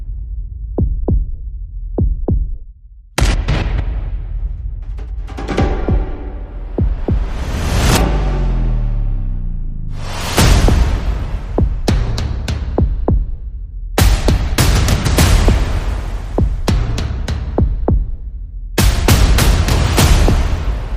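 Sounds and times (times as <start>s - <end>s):
percussion: 0.0s - 9.2s, 9.9s - 20.9s
sound effects: 5.2s - 8.7s.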